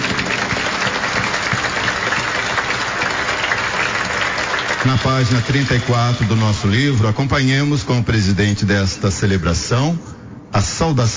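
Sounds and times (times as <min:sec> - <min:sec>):
audience applause: 0:00.0 - 0:07.3
speech: 0:04.8 - 0:11.1.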